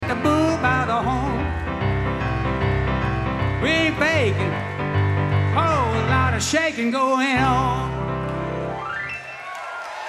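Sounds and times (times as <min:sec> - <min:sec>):
piano piece: 0:00.0 - 0:09.6.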